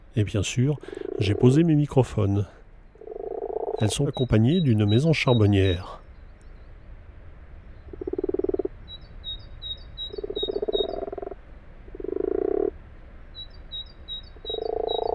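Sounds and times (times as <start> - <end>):
common frogs purring: 0.0 - 6.0, 7.8 - 12.8, 13.4 - 15.1
speech: 0.2 - 2.6, 3.8 - 6.0
faint high bird chirps: 3.8 - 6.8, 7.7 - 11.1, 13.3 - 15.1.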